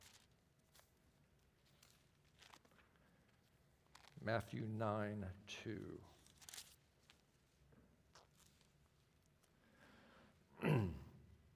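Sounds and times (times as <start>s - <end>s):
Bible pages rustling: 0.0s - 4.2s, 6.1s - 9.5s
speech: 4.2s - 6.2s.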